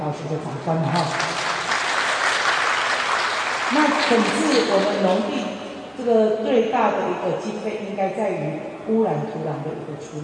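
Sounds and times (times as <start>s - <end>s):
speech: 0.1s - 1.3s, 3.7s - 10.2s
crowd applause: 1.0s - 5.1s.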